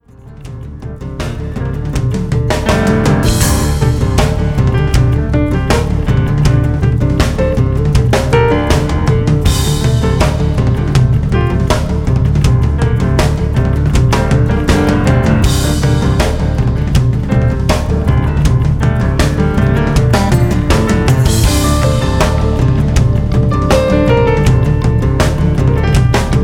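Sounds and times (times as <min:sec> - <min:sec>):
acoustic music: 0:00.0 - 0:26.4.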